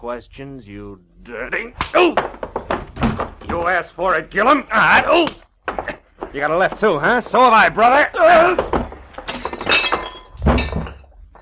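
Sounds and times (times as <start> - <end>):
speech: 0.0 - 2.5, 3.2 - 8.7
wood breaking: 1.8 - 3.8, 4.9 - 11.1
man crashing onto a coffee table: 1.9 - 3.8, 8.2 - 11.1
glass clinking and shattering: 8.2 - 11.2.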